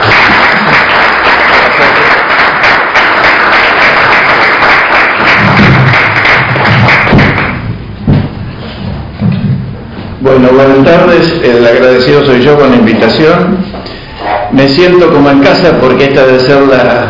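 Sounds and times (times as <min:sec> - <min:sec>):
audience applause: 0:00.0 - 0:07.6
low thumps: 0:05.2 - 0:10.3
speech: 0:10.5 - 0:13.7, 0:14.5 - 0:17.0.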